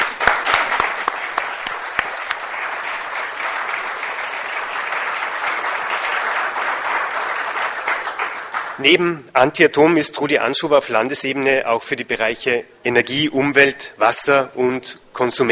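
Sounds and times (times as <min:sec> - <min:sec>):
audience applause: 0:00.0 - 0:08.8
speech: 0:08.8 - 0:15.5.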